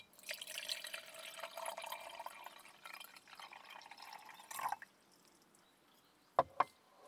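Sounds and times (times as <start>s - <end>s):
hot water pouring into a container: 0.0s - 4.9s.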